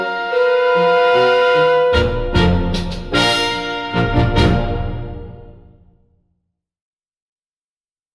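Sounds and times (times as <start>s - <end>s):
double bass dance music: 0.0s - 5.5s.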